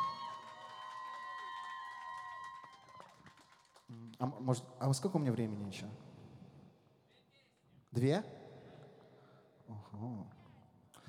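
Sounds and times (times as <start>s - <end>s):
audience applause: 0.0s - 4.4s
speech: 4.2s - 6.1s, 8.0s - 8.4s, 9.8s - 10.4s.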